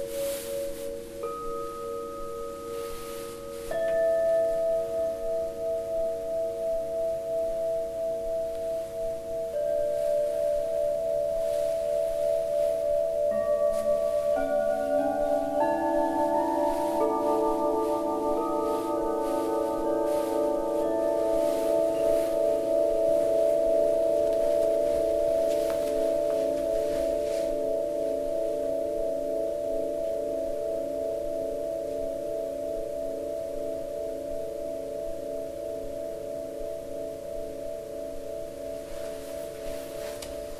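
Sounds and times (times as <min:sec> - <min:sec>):
tubular chimes: 0:00.0 - 0:40.5.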